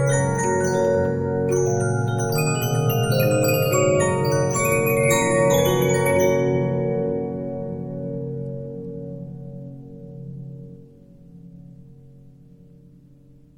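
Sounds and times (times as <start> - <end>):
Regina 15-inch disc music box: 0.0 - 8.0.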